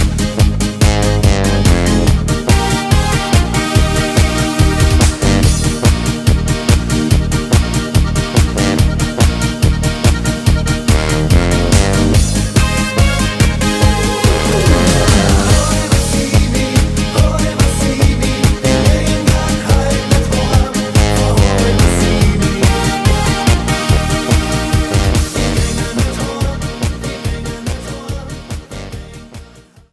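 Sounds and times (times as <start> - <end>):
karaoke singing: 0.0 - 29.9
choir singing: 13.8 - 28.5.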